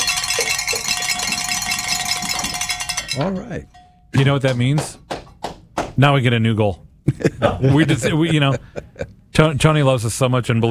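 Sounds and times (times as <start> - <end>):
celebratory bell ringing: 0.0 - 4.8
speech: 3.1 - 5.1, 6.0 - 10.7
laughter: 7.1 - 9.2.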